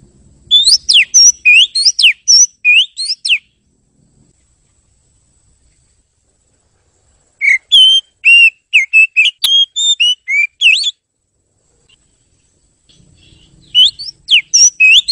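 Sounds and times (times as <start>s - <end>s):
bird whistling bright pure notes: 0.5s - 3.6s, 7.4s - 11.0s, 12.9s - 15.1s.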